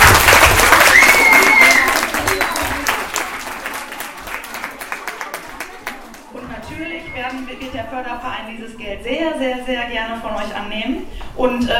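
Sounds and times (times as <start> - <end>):
audience applause: 0.0 - 6.3
cheer or whistle: 0.8 - 3.0
speech: 7.9 - 11.7.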